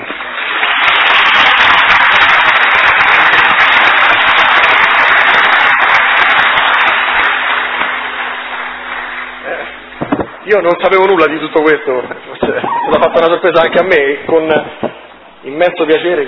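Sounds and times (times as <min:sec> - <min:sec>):
applause: 0:00.0 - 0:11.8
speech: 0:10.5 - 0:14.8, 0:15.4 - 0:16.2
laughter: 0:12.3 - 0:14.0.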